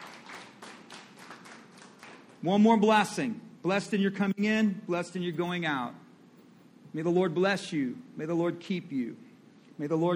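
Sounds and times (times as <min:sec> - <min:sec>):
audience clapping: 0:00.0 - 0:02.4
speech: 0:02.4 - 0:06.0, 0:06.9 - 0:09.2, 0:09.8 - 0:10.1.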